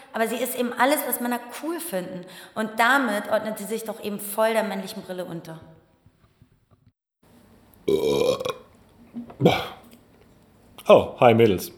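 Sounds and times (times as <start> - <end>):
speech: 0.2 - 5.8, 7.9 - 8.4, 9.2 - 9.8, 10.9 - 11.7
loud burp: 7.8 - 9.9.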